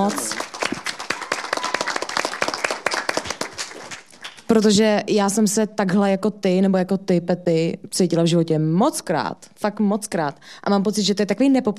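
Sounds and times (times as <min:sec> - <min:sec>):
speech: 0:00.0 - 0:00.4, 0:04.5 - 0:11.7
audience clapping: 0:00.0 - 0:04.8.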